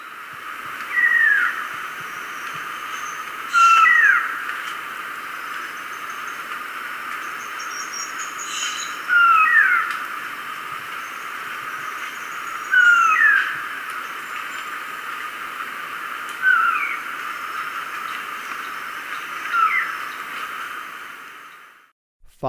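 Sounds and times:
steady hiss: 0.0 - 22.4
uniform antshrike calling: 3.5 - 4.4, 7.5 - 9.9, 12.2 - 13.6.

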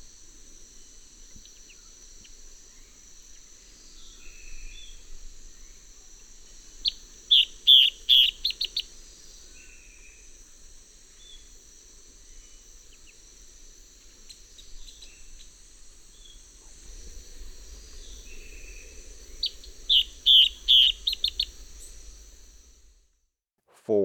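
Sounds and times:
Striated Antbird calling in South America: 6.8 - 8.9, 18.0 - 22.1.

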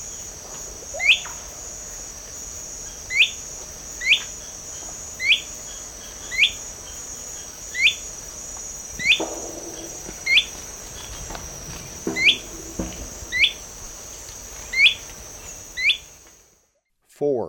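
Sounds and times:
Slender-footed Tyrannulet calling in the Eastern Lowlands of South America: 0.9 - 1.5, 2.9 - 8.2, 8.9 - 16.4.

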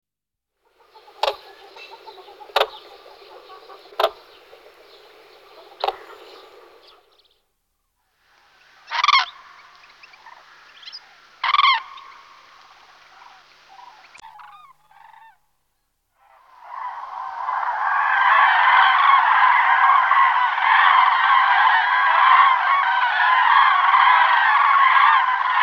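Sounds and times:
common crane trumpeting calls: 0.8 - 7.1, 8.8 - 12.6, 16.2 - 25.6.

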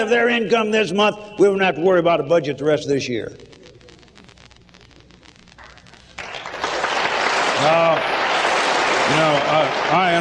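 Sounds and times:
speech: 0.0 - 3.6
audience applause: 5.6 - 10.1.

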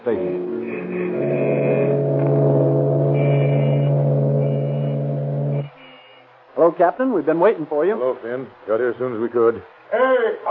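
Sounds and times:
speech: 0.0 - 0.5, 6.8 - 10.4
irate motorists honking car horns in a traffic line: 0.0 - 6.4.

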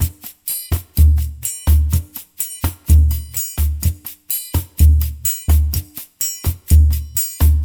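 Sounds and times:
Latin percussion: 0.0 - 7.6.

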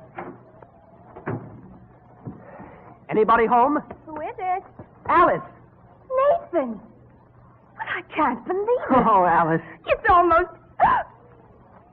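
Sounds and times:
house front door opening with soft wooden thuds: 0.0 - 2.9
speech: 3.1 - 4.0, 5.1 - 5.5, 6.5 - 6.9, 8.1 - 11.0.

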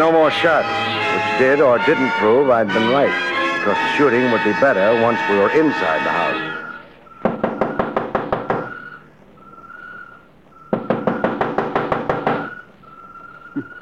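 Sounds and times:
speech: 0.0 - 6.5
knocking on a door: 7.2 - 8.7, 10.7 - 12.5.

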